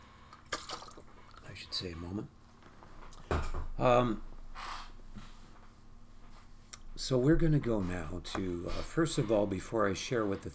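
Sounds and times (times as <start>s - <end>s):
person drinking water: 0.3s - 1.4s
speech: 1.6s - 2.4s, 3.8s - 4.3s, 7.1s - 10.5s.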